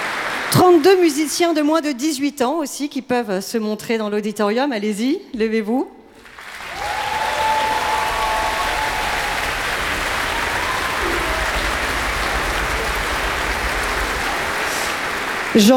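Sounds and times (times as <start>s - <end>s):
auditorium audience applause: 0.0s - 1.4s, 6.2s - 15.7s
speech: 0.6s - 6.0s, 15.6s - 15.7s.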